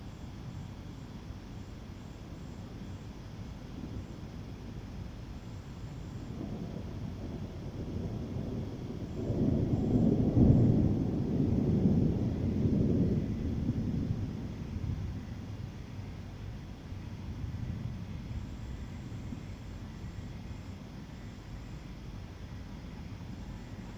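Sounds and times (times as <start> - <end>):
thunder in the evening in Douala Cameroon: 6.1 - 21.4.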